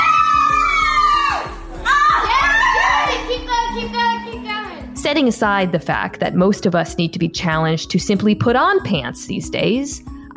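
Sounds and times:
friends cheering during a handstand: 0.0 - 4.2
steady low rhythmic pulse: 0.8 - 7.7
speech: 5.1 - 10.3.

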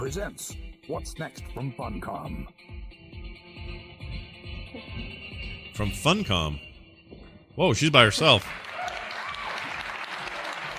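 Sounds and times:
speech: 0.1 - 2.8, 5.8 - 6.7, 7.6 - 8.7
audience applause: 8.1 - 10.7.

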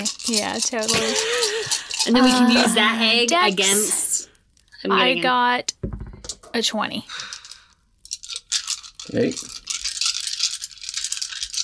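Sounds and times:
big handful of dice rattling: 0.0 - 3.4, 7.3 - 11.6
speech: 0.3 - 4.0, 4.8 - 5.8, 6.6 - 7.3, 9.1 - 9.6.

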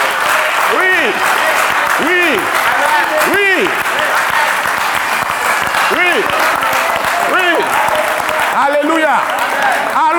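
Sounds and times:
audience applause and cheering: 0.0 - 10.1.

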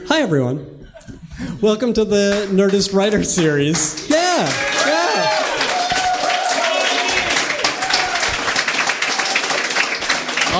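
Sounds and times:
speech: 0.1 - 0.7, 1.4 - 4.7
audience applause: 3.3 - 10.5
person whooping: 4.4 - 8.4.

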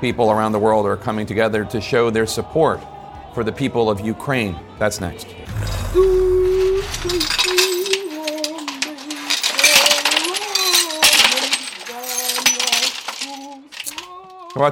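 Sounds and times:
speech: 0.0 - 6.2, 7.0 - 7.7, 14.6 - 14.7
woman singing: 1.7 - 14.7
broken glass being brushed from window: 5.5 - 14.7.

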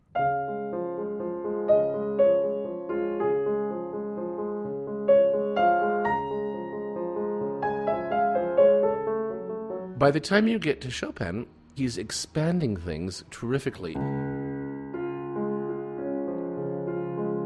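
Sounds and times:
solo piano nocturne melody over an Alberti bass: 0.0 - 10.0, 14.0 - 17.4
speech: 10.0 - 14.2.

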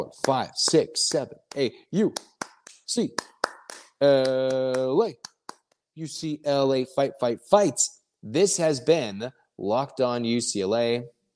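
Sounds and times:
speech: 0.0 - 2.3, 2.9 - 3.3, 4.0 - 5.3, 6.0 - 11.2
sharp hand claps: 0.2 - 5.7.

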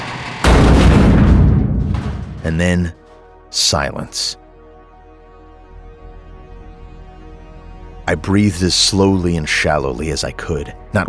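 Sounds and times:
rattling rumble: 0.0 - 3.3
creature smashing against garage door: 0.2 - 2.9
speech: 2.4 - 4.4, 8.1 - 11.0.

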